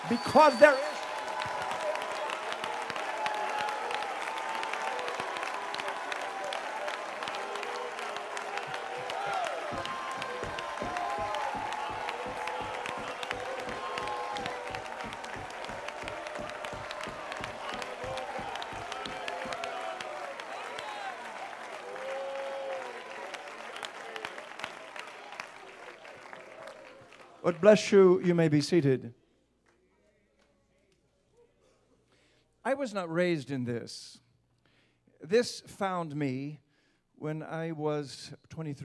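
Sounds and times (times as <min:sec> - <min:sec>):
speech: 0:00.0 - 0:01.0, 0:27.6 - 0:29.2, 0:32.8 - 0:34.2, 0:35.3 - 0:36.6, 0:37.2 - 0:38.8
audience applause: 0:00.0 - 0:27.8
scattered voices cheering: 0:00.0 - 0:27.8.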